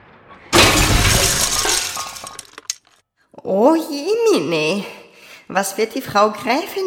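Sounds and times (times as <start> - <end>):
heavy crash of a grandfather clock toppling over: 0.3 - 2.8
glass shattering: 0.5 - 3.0
scattered pieces rattling and tinkling: 0.6 - 3.0
speech: 3.4 - 6.8.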